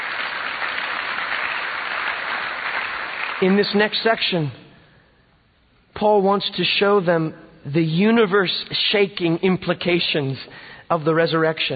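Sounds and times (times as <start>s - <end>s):
audience clapping: 0.0s - 4.2s
speech: 3.4s - 4.6s, 6.0s - 11.7s.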